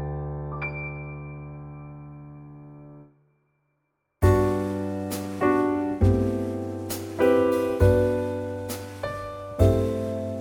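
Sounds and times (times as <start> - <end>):
music trio in G: 4.3 - 10.4.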